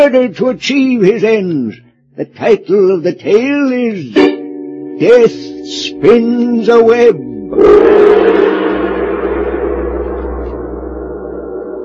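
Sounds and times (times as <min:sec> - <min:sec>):
speech: 0:00.0 - 0:04.4, 0:05.0 - 0:08.7
deep low drone: 0:07.2 - 0:11.8
single heavy gong stroke ringing: 0:07.2 - 0:11.8.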